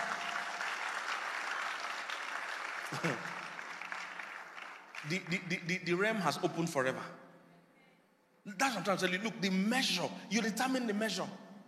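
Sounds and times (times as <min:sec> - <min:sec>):
audience clapping to the glory of God: 0:00.0 - 0:05.7
speech: 0:02.9 - 0:03.3, 0:05.0 - 0:07.2, 0:08.4 - 0:11.4.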